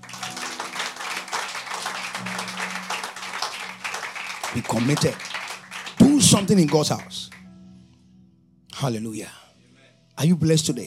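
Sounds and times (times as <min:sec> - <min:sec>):
audience clapping: 0:00.0 - 0:07.4
speech: 0:04.6 - 0:05.3, 0:06.2 - 0:07.3, 0:08.8 - 0:09.4, 0:10.2 - 0:10.8.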